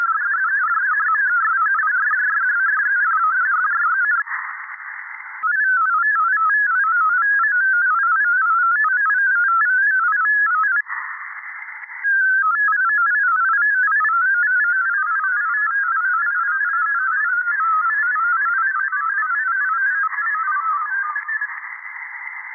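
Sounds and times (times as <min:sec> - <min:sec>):
VARA HF digital mode radio signal: 0:00.0 - 0:22.5.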